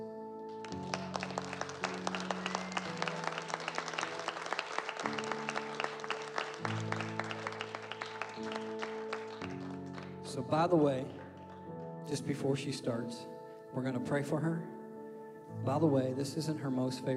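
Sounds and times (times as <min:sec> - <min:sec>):
audience applauding: 0:00.5 - 0:12.0
speech: 0:10.4 - 0:11.2, 0:12.1 - 0:14.7, 0:15.6 - 0:17.1.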